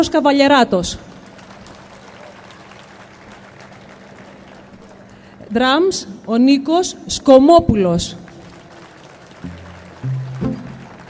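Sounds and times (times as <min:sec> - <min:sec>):
speech: 0:00.0 - 0:01.1, 0:05.5 - 0:08.2
audience applause: 0:01.0 - 0:05.5, 0:08.2 - 0:11.0.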